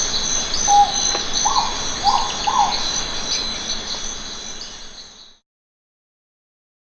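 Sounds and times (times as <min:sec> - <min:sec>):
Philippine hawk owl calling: 0:00.1 - 0:03.7.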